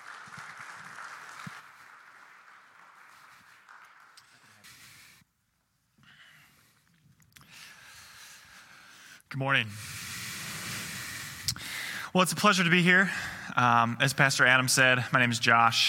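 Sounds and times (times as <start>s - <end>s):
audience applause: 0.0s - 5.2s
speech: 9.3s - 10.0s, 12.1s - 15.8s.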